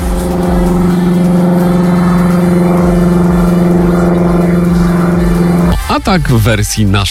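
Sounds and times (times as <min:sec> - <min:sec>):
airplane engine: 0:00.0 - 0:05.9
speech: 0:06.0 - 0:07.0.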